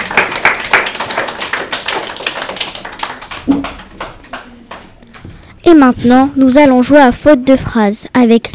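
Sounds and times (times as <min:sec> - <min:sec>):
audience applause: 0:00.0 - 0:05.0
speech: 0:05.7 - 0:08.5.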